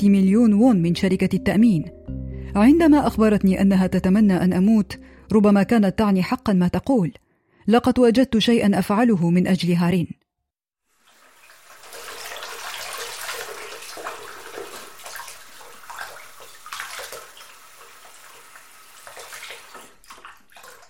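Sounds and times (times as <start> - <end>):
speech: 0.0 - 10.2
running water: 10.9 - 20.8
hands being washed: 11.0 - 20.8.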